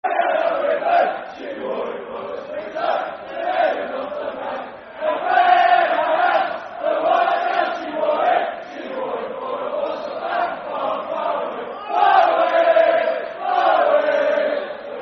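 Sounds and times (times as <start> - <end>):
football chant: 0.0 - 15.0.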